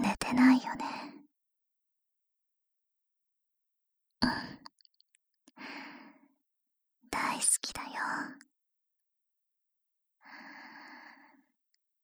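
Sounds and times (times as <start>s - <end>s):
person whispering: 0.0s - 1.2s, 4.2s - 4.8s, 7.2s - 8.4s.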